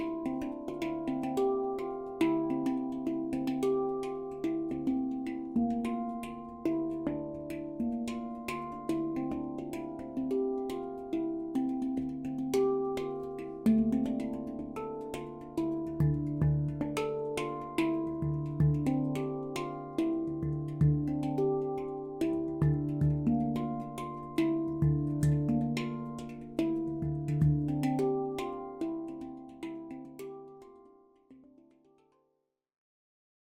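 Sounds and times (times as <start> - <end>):
low handpan in D Kurd tuning at 440 Hz: 0.0 - 32.1.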